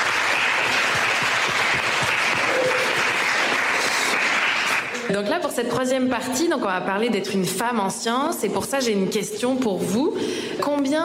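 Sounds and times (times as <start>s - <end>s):
audience applause: 0.0s - 5.1s
speech: 5.1s - 11.0s.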